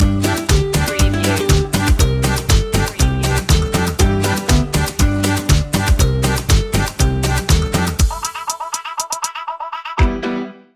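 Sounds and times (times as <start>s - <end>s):
instrumental music: 0.0s - 10.7s.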